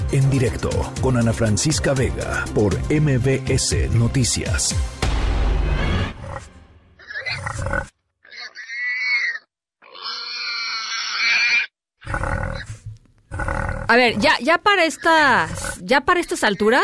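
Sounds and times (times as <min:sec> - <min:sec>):
speech: 0:00.1 - 0:05.0, 0:13.9 - 0:16.8
wild boar grunting: 0:07.0 - 0:16.8.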